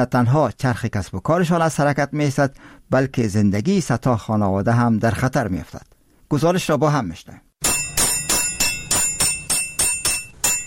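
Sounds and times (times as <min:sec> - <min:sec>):
speech: 0:00.0 - 0:07.7
hammers striking sheet tin in a tinsmith workshop: 0:07.6 - 0:10.6.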